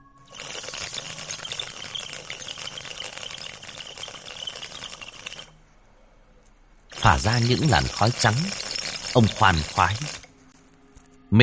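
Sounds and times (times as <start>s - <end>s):
bamboo water pipe bubbling: 0.0s - 5.6s, 6.9s - 10.3s
speech: 7.1s - 10.2s.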